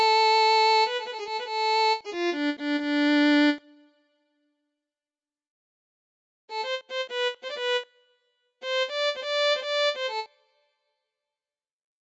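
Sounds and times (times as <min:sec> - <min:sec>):
violin: 0:00.0 - 0:03.8, 0:06.5 - 0:08.0, 0:08.6 - 0:10.5.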